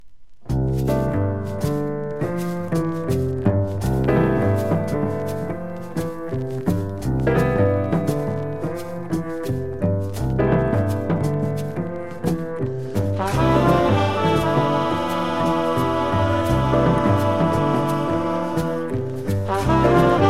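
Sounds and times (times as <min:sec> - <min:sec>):
percussion: 0:00.4 - 0:20.2.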